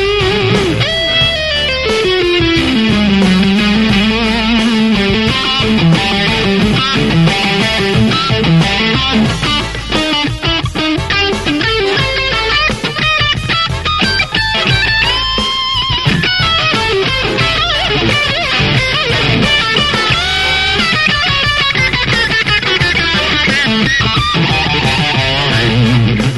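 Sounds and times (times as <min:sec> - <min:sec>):
strummed blues improvisation: 0:00.0 - 0:26.3.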